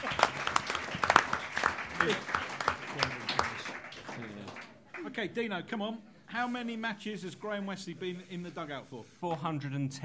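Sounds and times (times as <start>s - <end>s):
audience applause: 0.0s - 5.2s
speech: 2.0s - 2.3s, 5.2s - 10.0s.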